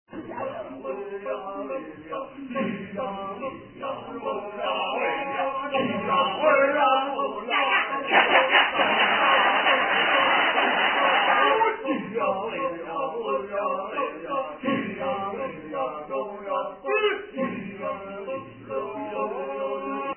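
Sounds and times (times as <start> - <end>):
kecak chanting: 0.1 - 20.1.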